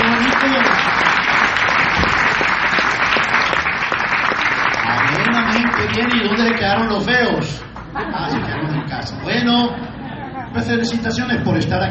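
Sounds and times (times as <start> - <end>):
audience applause: 0.0 - 8.0
speech: 6.2 - 11.9
laughter: 7.9 - 10.6.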